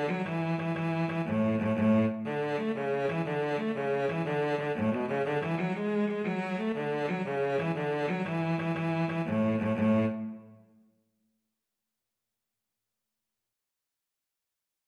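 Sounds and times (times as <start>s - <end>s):
cello playing Irish jig medley: 0.0s - 10.7s
violin playing Irish jig medley: 0.0s - 10.7s.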